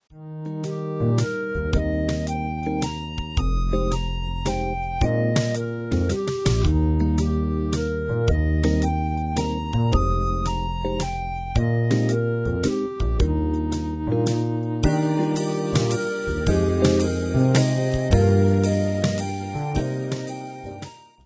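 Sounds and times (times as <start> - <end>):
major triad chord: 0.2 - 20.8.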